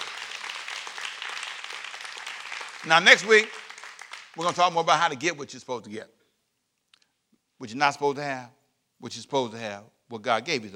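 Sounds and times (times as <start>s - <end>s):
audience hand clapping: 0.0s - 5.0s
speech: 2.8s - 3.6s, 4.4s - 6.2s, 7.6s - 10.7s.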